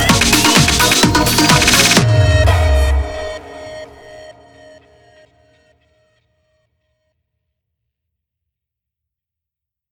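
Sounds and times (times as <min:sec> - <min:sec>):
electronic dance music: 0:00.0 - 0:05.4.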